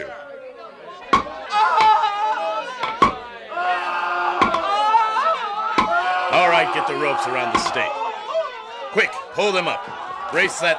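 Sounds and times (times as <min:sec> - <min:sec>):
crowd shouting and murmuring: 0:00.0 - 0:10.7
hammer striking nails: 0:02.8 - 0:03.2, 0:04.4 - 0:04.7
speech: 0:06.7 - 0:08.0, 0:08.9 - 0:10.7.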